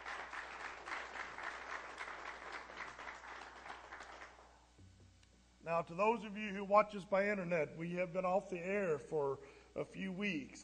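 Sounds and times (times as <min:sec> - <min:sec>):
audience applause: 0:00.0 - 0:04.5
speech: 0:05.7 - 0:10.6.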